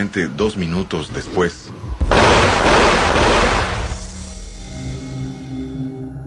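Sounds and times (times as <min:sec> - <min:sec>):
speech: 0:00.0 - 0:01.8
.44-caliber gunshot blowing out the window glass of a parked car: 0:02.0 - 0:04.2.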